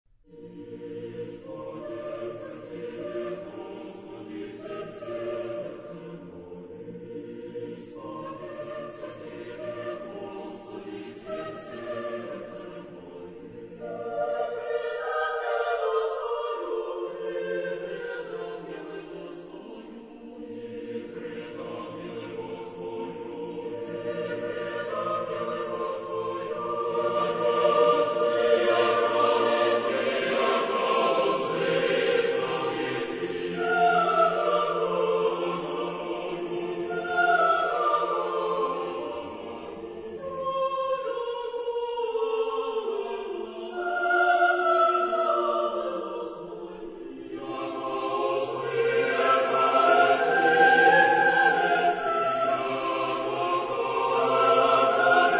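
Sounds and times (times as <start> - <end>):
double choir: 0.2 - 55.3.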